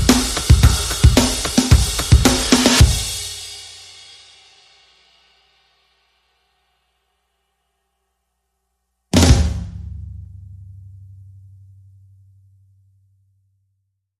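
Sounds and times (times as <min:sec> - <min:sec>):
percussion: 0:00.0 - 0:07.4.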